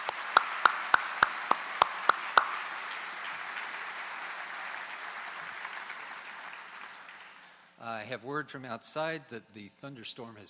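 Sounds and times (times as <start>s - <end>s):
hand claps at Princeton University's 2010 graduate hooding ceremony: 0.0s - 7.6s
speech: 7.8s - 10.4s.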